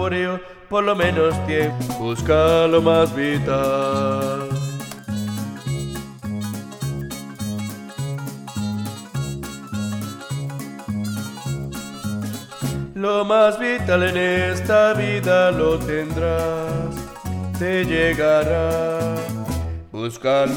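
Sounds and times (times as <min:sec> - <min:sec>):
bass: 0:00.0 - 0:20.5.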